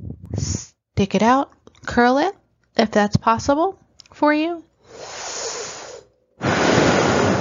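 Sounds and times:
speech: 1.0s - 5.2s
Sitali cooling breath exhaled through the teeth: 4.8s - 7.3s.

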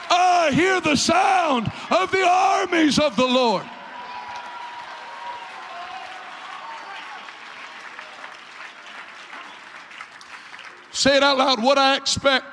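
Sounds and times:
audience clapping: 0.0s - 1.8s, 3.9s - 11.6s
voices shouting and cheering: 0.0s - 7.4s
speech: 0.5s - 3.8s, 11.0s - 12.5s.

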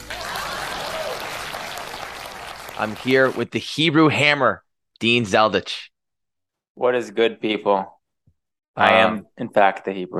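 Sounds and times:
crowd applause: 0.0s - 3.5s
speech: 2.8s - 5.9s, 6.8s - 8.0s, 8.8s - 10.1s.

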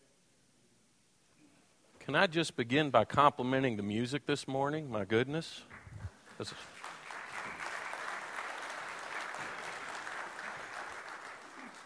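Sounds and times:
speech: 2.1s - 5.8s, 6.4s - 6.7s
large group clapping: 5.7s - 11.8s.

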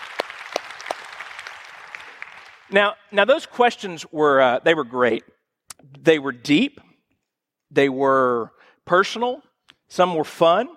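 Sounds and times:
audience applause: 0.0s - 2.7s
speech: 2.7s - 6.8s, 7.7s - 10.7s.

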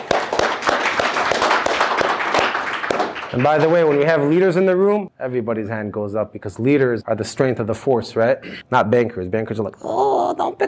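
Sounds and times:
audience applause: 0.0s - 4.4s
speech: 3.3s - 10.6s.

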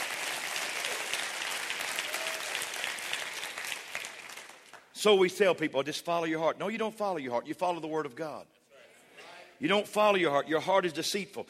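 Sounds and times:
audience clapping: 0.0s - 4.9s
speech: 5.0s - 8.6s, 9.6s - 11.4s.

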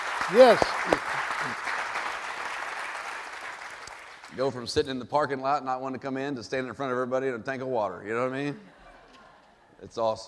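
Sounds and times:
audience applause in church: 0.0s - 4.4s
speech: 0.3s - 1.6s, 4.4s - 8.8s, 9.8s - 10.2s.

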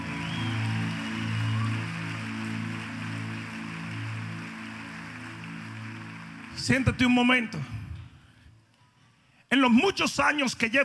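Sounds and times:
audience applause: 0.0s - 7.7s
speech: 6.6s - 7.8s, 9.5s - 10.8s.

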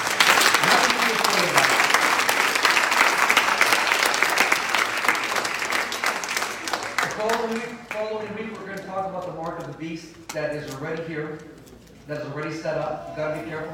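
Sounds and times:
audience clapping hands: 0.0s - 8.8s
speech: 9.8s - 13.7s.

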